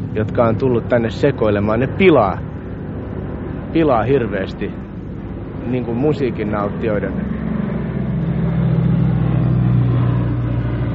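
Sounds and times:
airplane passing overhead with engine drone: 0.0 - 10.9
speech: 0.2 - 2.5, 3.7 - 4.8, 5.7 - 7.4.

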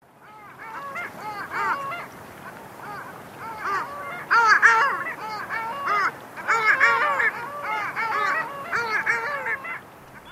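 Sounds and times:
Long-tailed Duck chorus: 0.2 - 10.3.

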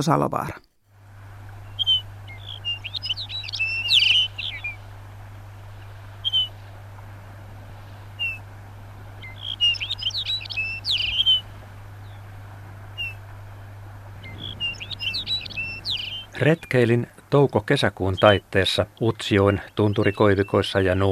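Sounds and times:
speech: 0.0 - 0.7, 16.4 - 21.1
Lapland bunting singing: 0.0 - 21.1
steady low hum: 0.5 - 21.1
Lapland bunting call notes: 1.2 - 16.9, 19.4 - 20.8.

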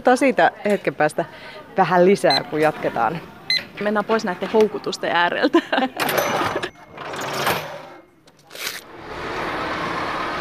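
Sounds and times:
speech: 0.0 - 6.7
laughter: 5.4 - 6.2
bus idling in Jyväskylä city centre: 8.9 - 10.3.

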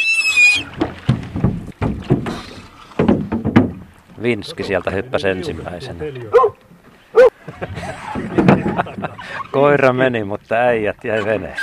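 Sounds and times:
boat pulled ashore onto rollers: 0.0 - 11.6
speech: 4.2 - 8.0, 8.8 - 11.6
laughter: 7.4 - 9.5.

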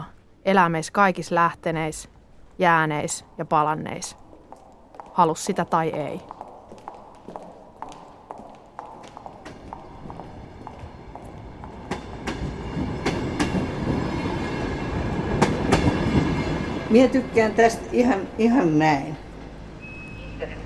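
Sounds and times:
speech: 0.4 - 4.2, 5.2 - 6.3, 16.9 - 19.2
wheels clacking over rail joints: 7.6 - 17.4
train passing on rails: 7.6 - 19.9.

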